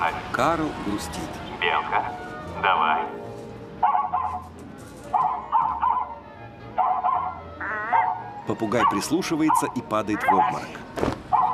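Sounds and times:
speech: 0.0s - 3.2s, 8.5s - 11.1s
dog barking: 3.8s - 4.5s, 5.1s - 6.1s, 6.8s - 8.2s, 8.8s - 10.6s, 11.3s - 11.5s.

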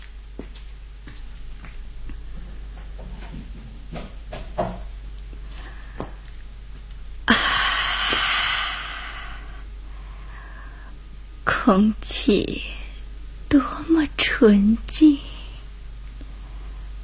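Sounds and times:
low hum: 0.0s - 17.0s
soft knocks and thuds: 2.8s - 4.9s
speech: 11.7s - 12.8s, 13.5s - 15.3s.

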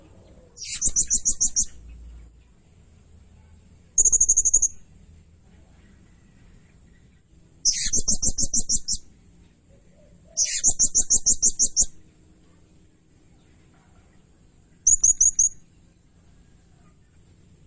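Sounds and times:
blue-crowned hanging parrot giving shrill high chirps: 0.6s - 1.8s, 4.0s - 4.8s, 7.6s - 9.1s, 10.4s - 12.0s, 14.8s - 15.7s.

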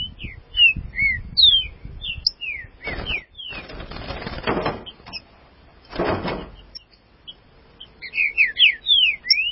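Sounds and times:
green-winged saltator singing: 0.0s - 3.6s, 8.0s - 9.5s.

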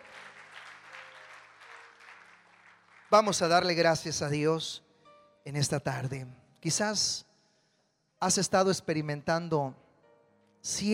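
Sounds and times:
congregation clapping in praise during a church service: 0.0s - 4.3s
speech: 3.1s - 4.8s, 5.5s - 7.3s, 8.2s - 9.8s, 10.6s - 10.9s.

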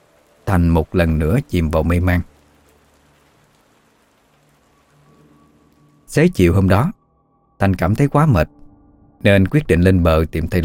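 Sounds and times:
heavy rain drumming on a domed roof: 0.0s - 6.9s
speech: 0.5s - 2.3s, 6.1s - 7.0s, 7.6s - 8.6s, 9.2s - 10.6s.

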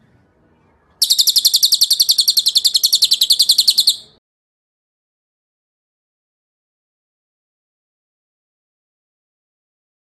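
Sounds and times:
bird trill: 1.0s - 4.2s.

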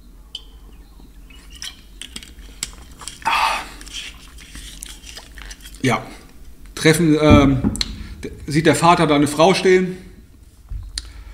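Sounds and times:
person drinking a sip of water: 2.4s - 5.8s
speech: 5.8s - 6.2s, 6.8s - 7.9s, 8.5s - 10.0s.

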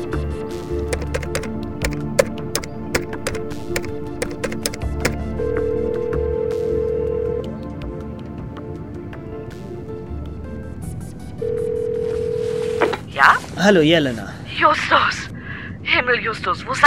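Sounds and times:
satellite phone key clicks on an airplane: 0.9s - 5.2s
satellite phone ringing tone: 4.2s - 7.5s, 11.4s - 13.0s
speech: 13.6s - 15.2s, 16.1s - 16.8s.

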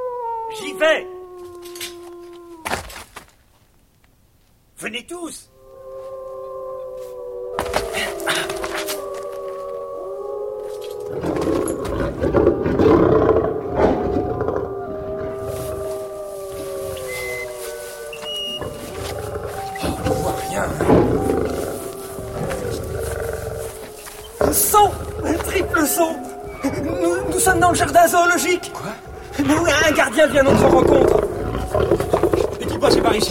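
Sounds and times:
speech: 0.5s - 1.2s, 4.8s - 5.5s, 26.0s - 31.2s, 33.0s - 33.3s
escaped elephant trumpeting: 5.7s - 33.3s.

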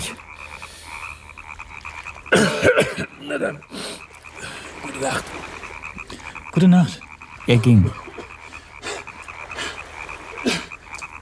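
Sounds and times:
harsh rasping cough: 2.3s - 3.3s, 10.5s - 10.7s
speech: 2.3s - 3.9s, 5.0s - 5.5s, 6.6s - 8.0s.

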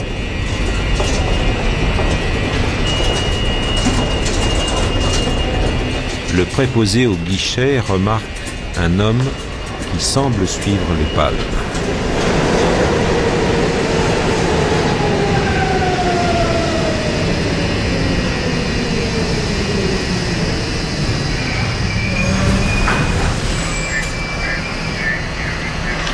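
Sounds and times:
metro train running on rails: 0.0s - 26.1s
metro train whining tones sliding in pitch: 0.0s - 26.1s
speech: 6.4s - 11.9s.

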